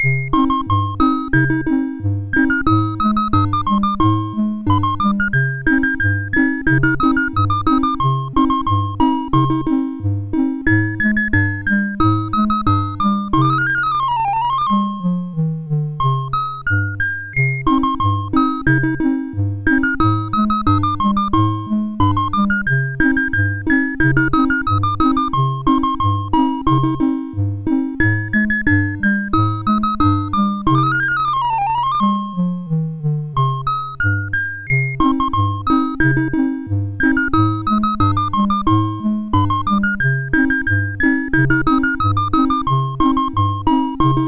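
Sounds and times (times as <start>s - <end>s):
MOS6581R4 SID chip game music: 0.0s - 44.2s.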